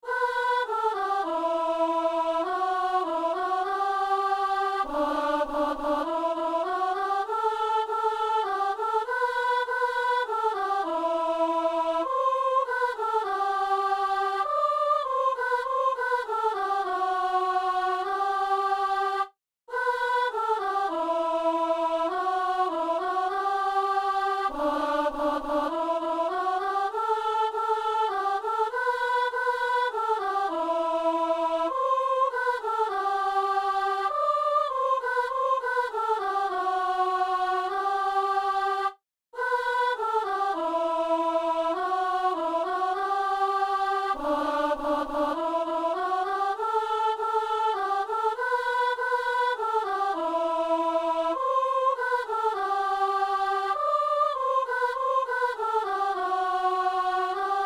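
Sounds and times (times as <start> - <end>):
alto voices of an assembly singing: 0.0 - 57.6.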